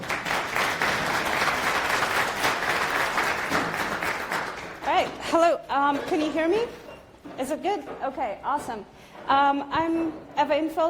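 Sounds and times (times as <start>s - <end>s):
audience applause: 0.0s - 4.8s
speech: 5.0s - 10.8s.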